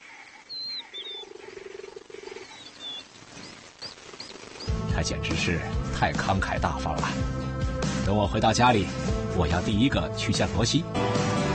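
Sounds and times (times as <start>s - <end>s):
cheetah purring: 0.6s - 4.8s
speech: 5.0s - 11.3s.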